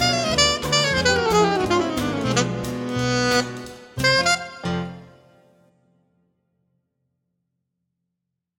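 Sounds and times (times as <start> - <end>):
alto saxophone: 0.0 - 5.5.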